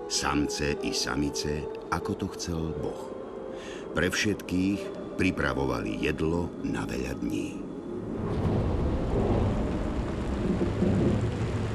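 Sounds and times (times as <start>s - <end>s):
dense pouring rain in a storm: 0.0s - 11.7s
speech: 0.1s - 7.7s
deep rumbling storm wind: 3.1s - 11.7s.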